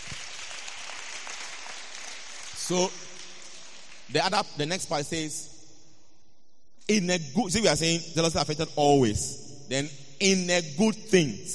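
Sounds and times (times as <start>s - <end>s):
congregation applauding: 0.0s - 4.3s
speech: 2.7s - 3.0s, 4.1s - 5.5s, 6.9s - 11.5s.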